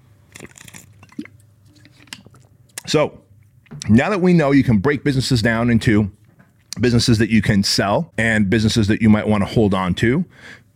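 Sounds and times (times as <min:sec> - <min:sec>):
sipping a wellness shot drink: 0:00.3 - 0:03.8
speech: 0:02.9 - 0:03.2, 0:03.9 - 0:06.2, 0:06.8 - 0:10.6.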